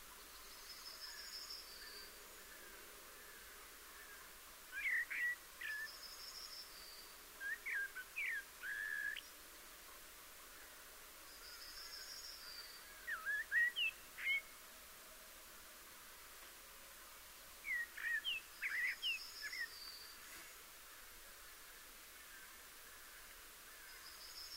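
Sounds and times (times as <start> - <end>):
Common blackbird song: 0.2 - 9.4, 10.6 - 14.6, 17.6 - 20.4, 21.4 - 24.5.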